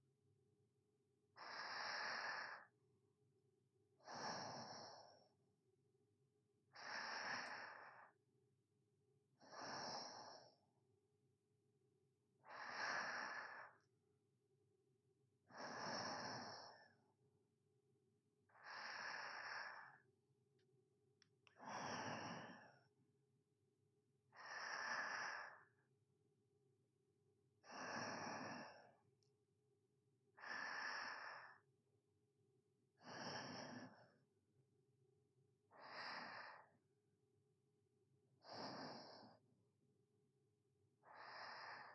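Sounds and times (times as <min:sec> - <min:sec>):
sleeping breathing ASMR: 0:01.4 - 0:02.7, 0:04.0 - 0:05.3, 0:06.7 - 0:08.2, 0:09.4 - 0:10.6, 0:12.4 - 0:13.9, 0:15.5 - 0:17.0, 0:18.5 - 0:20.0, 0:21.6 - 0:22.9, 0:24.3 - 0:25.8, 0:27.7 - 0:29.0, 0:30.4 - 0:31.6, 0:33.0 - 0:34.2, 0:35.7 - 0:36.8, 0:38.4 - 0:39.4, 0:41.0 - 0:41.9.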